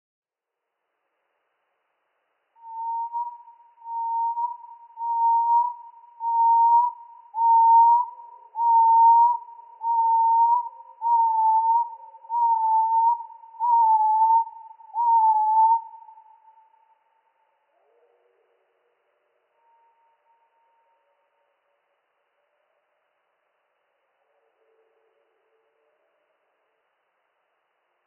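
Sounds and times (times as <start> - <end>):
firecrest song slowed down: 2.6 - 17.0.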